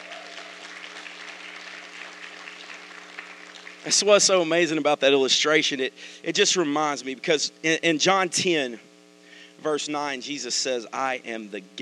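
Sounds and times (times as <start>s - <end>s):
audience hand clapping: 0.0s - 4.3s
speech: 3.8s - 8.9s, 9.6s - 11.8s.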